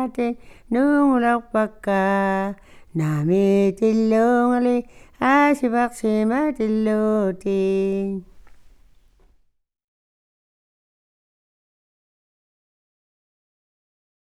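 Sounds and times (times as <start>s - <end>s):
Inuit song: 0.0s - 9.0s.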